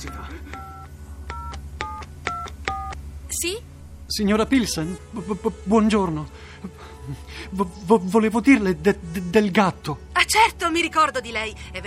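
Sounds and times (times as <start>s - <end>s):
low steady hum: 0.0s - 11.8s
videophone keypad dialing tones: 0.1s - 3.0s
speech: 3.4s - 11.8s.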